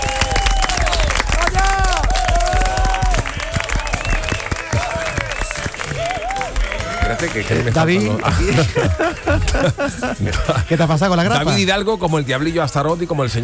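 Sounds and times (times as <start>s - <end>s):
audience applause: 0.0s - 9.9s
laughter: 4.7s - 11.6s
speech: 7.3s - 13.4s.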